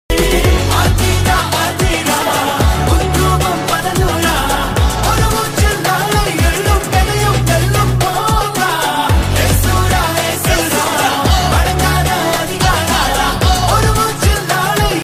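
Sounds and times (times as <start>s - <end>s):
Tamil song: 0.1s - 15.0s.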